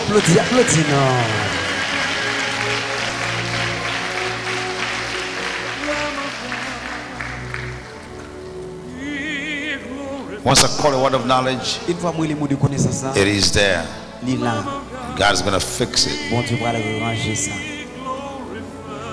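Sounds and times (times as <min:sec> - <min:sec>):
audience clapping hands: 0:00.0 - 0:08.6
speech: 0:00.1 - 0:01.4, 0:10.4 - 0:17.8.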